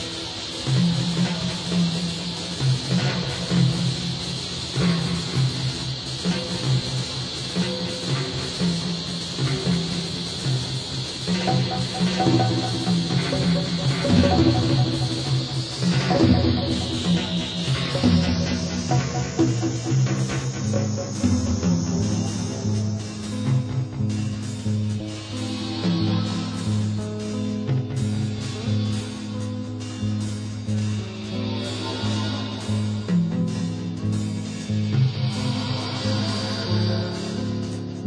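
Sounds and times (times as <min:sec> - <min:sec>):
guitar: 0:00.0 - 0:38.0
drum noise: 0:11.3 - 0:23.8.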